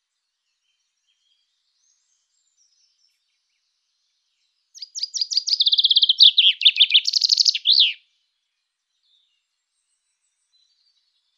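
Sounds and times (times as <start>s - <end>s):
common chaffinch song: 4.6s - 8.1s.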